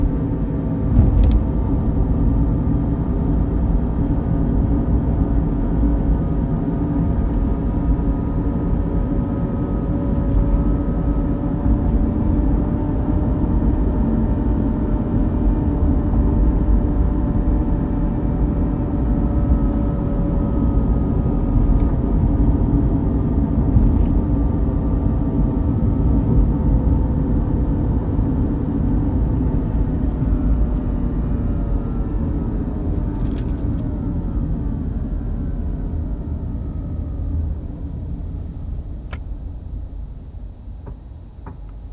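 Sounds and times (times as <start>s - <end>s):
road rumble while driving on a highway: 0.0s - 41.9s
short rattle: 33.0s - 33.8s.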